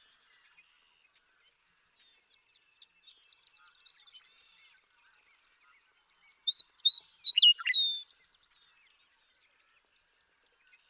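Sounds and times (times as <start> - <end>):
male Western meadowlark singing in Sierra Valley, eastern California: 6.5 - 8.1.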